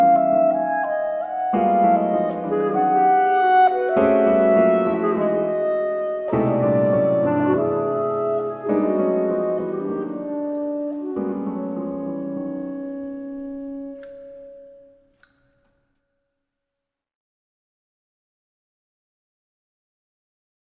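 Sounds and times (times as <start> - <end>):
clarinet: 0.0 - 15.3.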